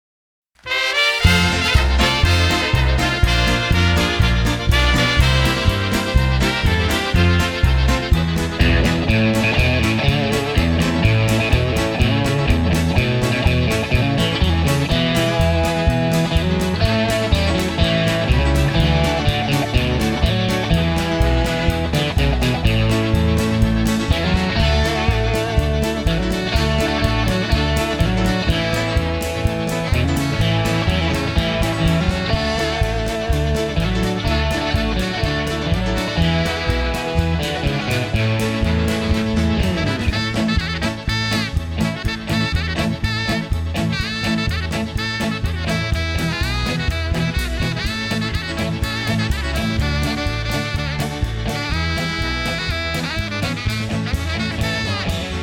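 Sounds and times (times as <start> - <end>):
polka music: 0.6 - 55.4.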